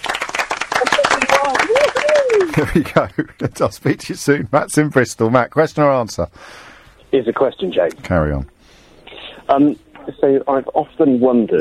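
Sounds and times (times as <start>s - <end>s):
crowd round of applause: 0.0s - 3.2s
laughter: 1.2s - 4.0s
speech: 2.6s - 8.6s, 9.5s - 11.6s.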